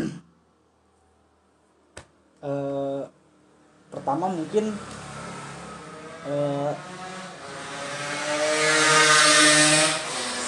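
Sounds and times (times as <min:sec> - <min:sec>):
speech: 0:02.4 - 0:03.2, 0:03.9 - 0:05.0, 0:06.2 - 0:07.0
motorbikes roaring past noisily outside: 0:03.9 - 0:10.4.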